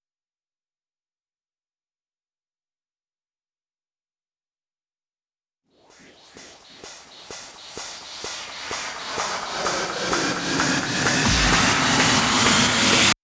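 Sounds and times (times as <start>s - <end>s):
club music drum fills: 5.9s - 13.2s.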